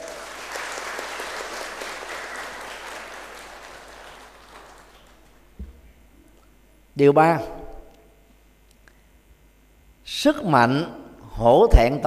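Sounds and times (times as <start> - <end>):
audience applause: 0.0 - 5.4
speech: 7.0 - 7.6, 10.2 - 12.0.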